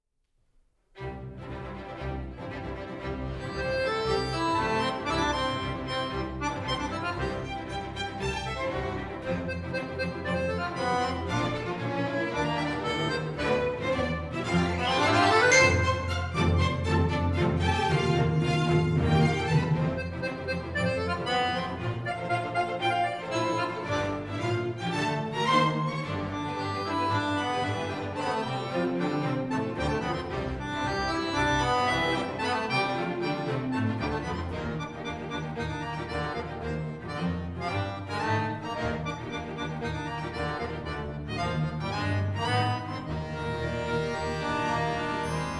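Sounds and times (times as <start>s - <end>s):
accordion concerto: 1.0s - 45.5s.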